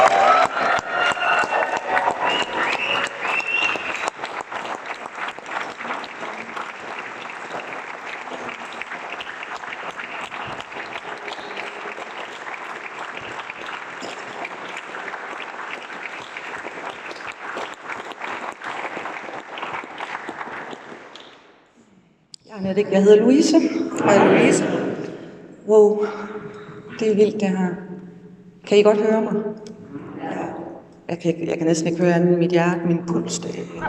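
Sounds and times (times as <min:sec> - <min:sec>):
crowd applauding to welcome an opening speaker at a gathering: 0:00.0 - 0:21.4
speech: 0:22.8 - 0:24.9, 0:25.7 - 0:26.2, 0:27.0 - 0:27.8, 0:28.7 - 0:29.6, 0:31.2 - 0:33.7.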